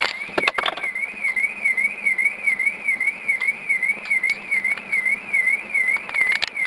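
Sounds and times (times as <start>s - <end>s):
siren: 0.0s - 6.6s.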